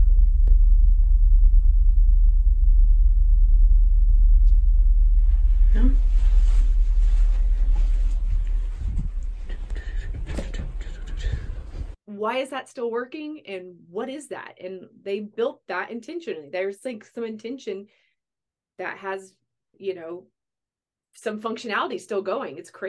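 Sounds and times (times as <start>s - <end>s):
electrical hum from an equipment box: 0.0s - 12.0s
rustling noise: 4.5s - 12.0s
speech: 12.2s - 18.0s, 18.8s - 20.3s, 21.2s - 22.8s.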